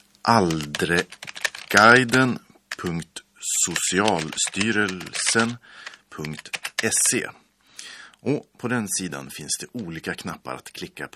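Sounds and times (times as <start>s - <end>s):
speech: 0.2s - 7.4s, 8.2s - 11.1s
typing a web address on a computer keyboard: 0.4s - 2.9s, 3.7s - 7.2s.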